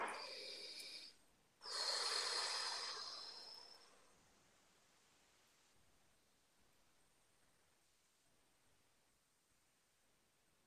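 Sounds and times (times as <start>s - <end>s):
deep breaths during a guided exercise: 0.0s - 6.2s.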